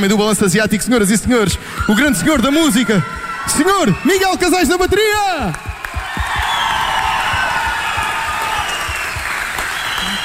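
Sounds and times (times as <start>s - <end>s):
speech: 0.0s - 5.7s
crowd cheering and whooping: 1.8s - 10.2s
crowd applauding: 3.0s - 10.2s.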